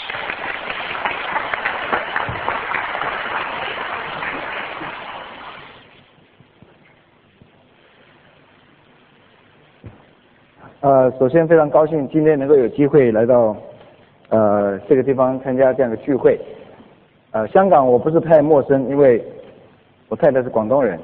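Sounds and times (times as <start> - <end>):
large crowd applause welcoming a speaker: 0.0 - 5.9
speech: 10.9 - 13.7, 14.3 - 16.6, 17.3 - 19.4, 20.1 - 21.0.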